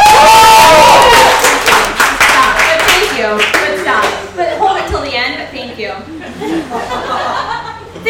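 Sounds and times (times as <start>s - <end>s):
audience cheering: 0.0s - 2.9s
loud audience applause: 0.0s - 4.0s
audience laughter: 6.1s - 8.0s.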